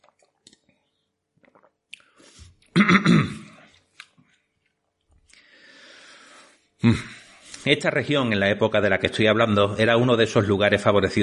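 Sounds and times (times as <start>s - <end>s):
sipping and swallowing water: 0.0s - 2.7s
speech: 2.8s - 3.4s, 6.8s - 11.2s.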